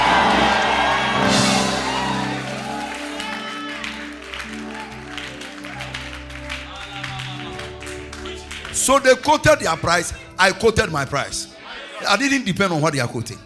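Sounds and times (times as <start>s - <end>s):
audience shouting praise and applauding: 0.0s - 10.0s
speech: 8.9s - 13.4s.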